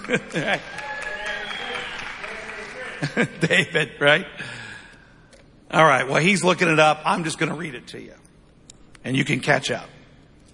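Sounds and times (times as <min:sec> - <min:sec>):
audience cheering: 0:00.0 - 0:03.0
laughter: 0:00.0 - 0:04.3
speech: 0:00.1 - 0:00.9, 0:03.0 - 0:04.6, 0:05.7 - 0:08.2, 0:09.0 - 0:10.0.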